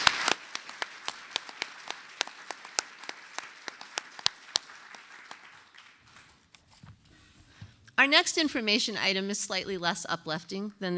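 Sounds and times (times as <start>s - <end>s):
audience applause: 0.0s - 6.5s
speech: 8.0s - 10.9s.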